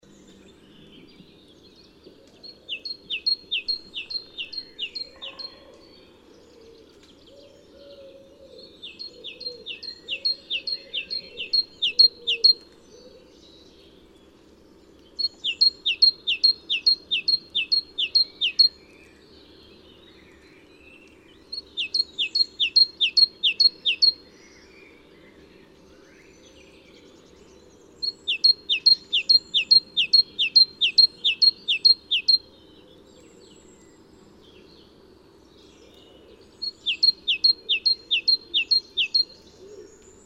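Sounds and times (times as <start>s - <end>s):
faint hum: 0.0s - 40.2s
great tit singing: 1.3s - 5.7s, 8.7s - 12.6s, 14.7s - 19.0s, 20.7s - 24.4s, 27.2s - 32.8s, 35.8s - 40.2s.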